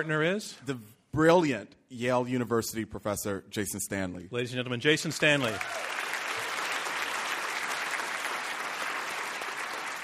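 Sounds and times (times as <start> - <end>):
speech: 0.0 - 6.0
crowd applause: 5.4 - 10.0.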